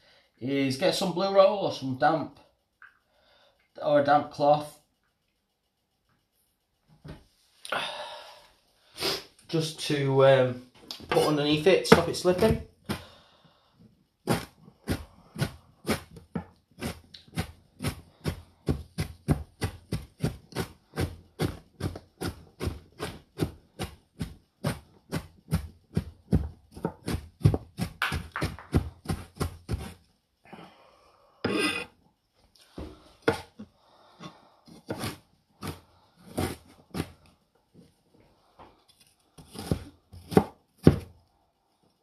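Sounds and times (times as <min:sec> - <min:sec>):
speech: 0:00.4 - 0:02.4, 0:03.8 - 0:04.8, 0:07.7 - 0:08.0, 0:09.5 - 0:12.7
kitchen knife chopping ginger on a cutting board: 0:14.3 - 0:30.0, 0:33.3 - 0:33.5, 0:34.7 - 0:37.2, 0:39.4 - 0:41.1.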